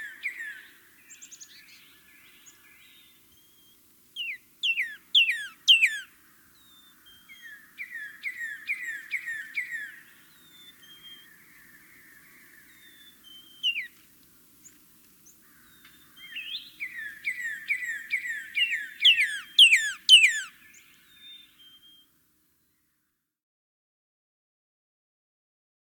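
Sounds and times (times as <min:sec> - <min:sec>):
Northern Cardinal in North America: 0:00.0 - 0:14.0, 0:14.6 - 0:22.8.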